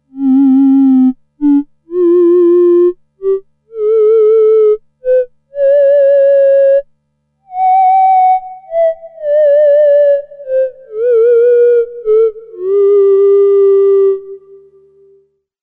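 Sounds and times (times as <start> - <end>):
theremin: 0.1 - 6.9, 7.5 - 15.1.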